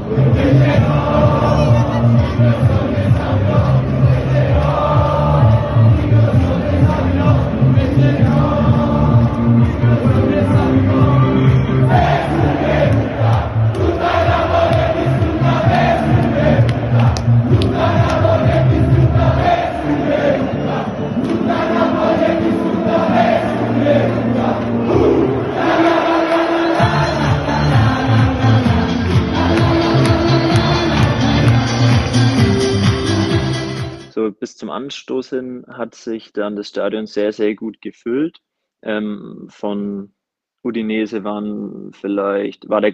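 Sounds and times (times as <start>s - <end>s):
large stadium crowd singing and chanting before kickoff: 0.0s - 34.0s
speech: 34.9s - 42.9s.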